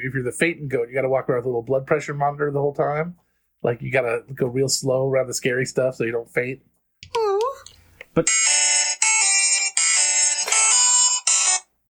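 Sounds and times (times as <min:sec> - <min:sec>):
speech: 0:00.0 - 0:07.2, 0:08.2 - 0:08.4
phone ringtone: 0:08.3 - 0:11.7.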